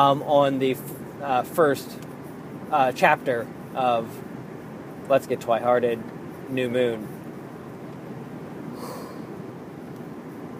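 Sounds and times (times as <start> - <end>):
speech: 0.0 - 2.1, 2.7 - 4.3, 5.1 - 7.2
person yawning: 8.8 - 9.3.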